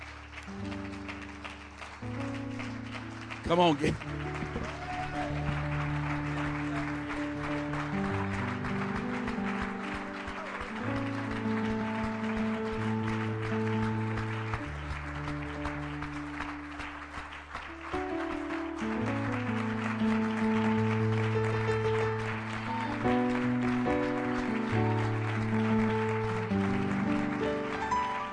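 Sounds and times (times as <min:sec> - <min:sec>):
audience clapping: 0:00.0 - 0:28.3
organ or keyboard chords: 0:00.0 - 0:28.3
speech: 0:00.5 - 0:00.8, 0:03.5 - 0:04.2.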